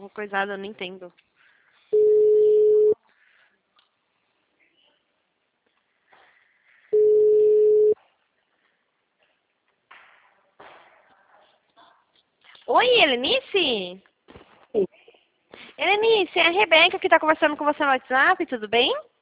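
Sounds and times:
speech: 0.1 - 1.3, 12.7 - 14.1, 15.8 - 19.1
ringback tone while placing a phone call: 2.0 - 3.0, 7.0 - 8.0.

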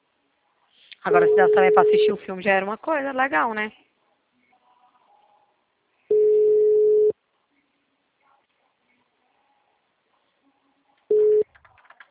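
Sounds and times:
speech: 1.0 - 3.9
telephone busy signal on a call in Brazil: 1.1 - 2.1, 6.1 - 7.1.

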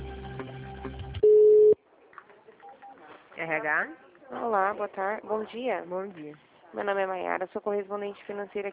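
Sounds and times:
telephone line beep during call transfer: 1.2 - 1.7
speech: 3.6 - 8.7.

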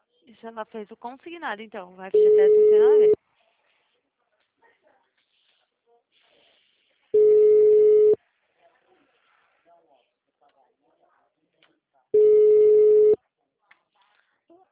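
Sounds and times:
speech: 0.3 - 3.3
telephone ringback tones of an unanswered call: 2.2 - 3.2, 7.2 - 8.2, 12.2 - 13.2.

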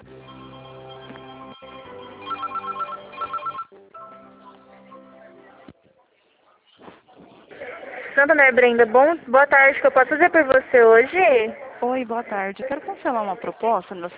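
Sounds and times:
tonal hold melody on a bank's credit call-center phone line: 0.0 - 5.5
rapid pulsed telephone rings while a call is transferred: 0.3 - 4.1
speech: 8.2 - 14.1.

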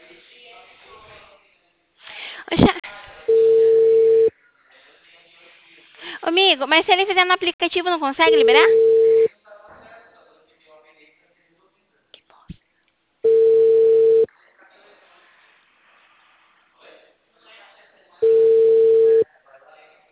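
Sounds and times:
telephone busy tone after a dropped call: 3.3 - 4.3, 8.3 - 9.3, 13.3 - 14.3, 18.2 - 19.2
speech: 6.6 - 8.9.

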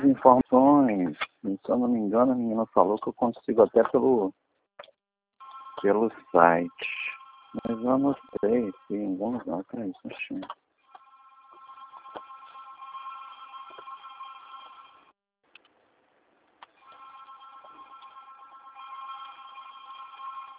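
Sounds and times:
speech: 0.2 - 4.5, 5.8 - 10.6
office telephone ringing with a buzzing electronic trill: 5.4 - 15.2, 16.8 - 20.5.

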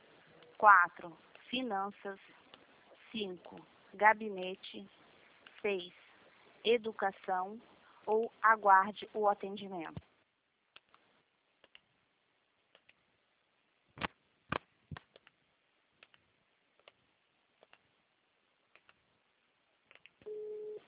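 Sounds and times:
speech: 0.6 - 2.4, 3.1 - 5.0, 5.6 - 6.0, 6.6 - 10.1
steady telephone line tone: 20.2 - 20.8.

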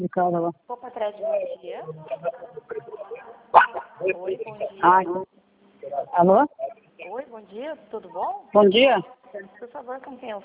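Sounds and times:
speech: 0.0 - 2.6, 3.5 - 5.3, 5.9 - 10.4
dog barking: 3.5 - 4.0.

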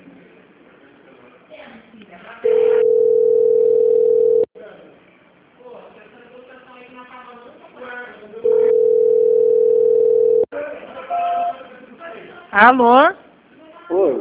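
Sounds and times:
speech: 1.7 - 2.8, 12.6 - 13.2
telephone line tones during a call transfer: 2.5 - 4.5, 8.5 - 10.5.

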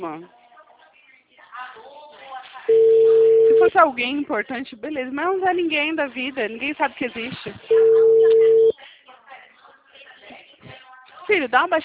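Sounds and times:
speech: 0.0 - 0.4, 3.6 - 8.1, 11.3 - 11.8
ringback tone on an unanswered outgoing telephone call: 2.7 - 3.8, 7.7 - 8.7.

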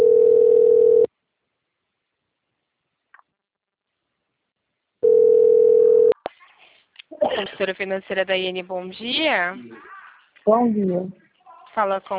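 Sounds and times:
ringback tone of an unanswered telephone call: 0.0 - 1.1, 5.0 - 6.1
speech: 7.6 - 12.1.

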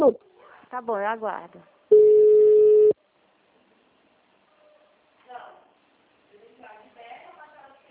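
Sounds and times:
speech: 0.0 - 2.0
electronic telephone ringing: 1.9 - 3.0.

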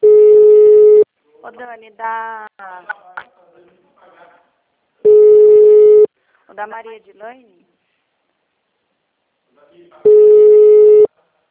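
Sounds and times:
telephone busy tone after hang-up: 0.0 - 1.0, 5.1 - 6.1, 10.1 - 11.1
speech: 1.6 - 3.3, 6.5 - 7.7, 9.6 - 10.9.

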